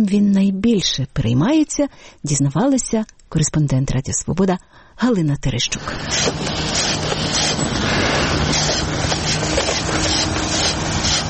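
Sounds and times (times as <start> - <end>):
speech: 0.0 - 11.2
broom sweeping a street: 5.8 - 11.2.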